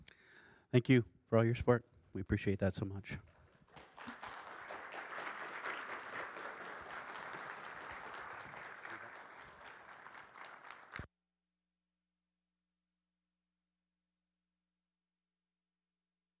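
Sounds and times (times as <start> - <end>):
speech: 0.7 - 3.3
audience applauding: 3.3 - 11.1.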